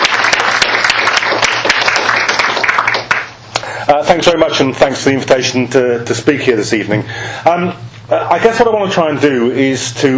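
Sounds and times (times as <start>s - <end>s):
audience applause: 0.0s - 3.4s
speech: 3.9s - 10.1s.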